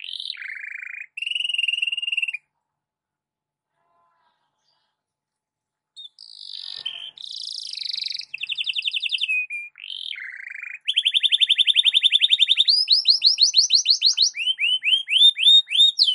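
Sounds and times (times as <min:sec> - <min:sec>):
canary whistling and trilling: 0:00.0 - 0:02.5, 0:06.0 - 0:16.1.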